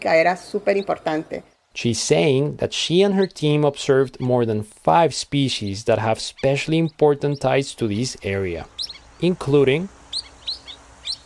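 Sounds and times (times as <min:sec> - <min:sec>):
speech: 0:00.0 - 0:10.0
Wilson's Plover calls: 0:06.2 - 0:11.2.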